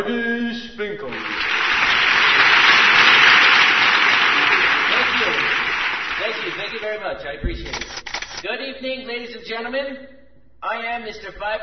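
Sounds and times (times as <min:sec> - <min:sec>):
standing audience applause welcoming a presidential candidate: 0:01.1 - 0:07.0
speech: 0:06.8 - 0:11.6.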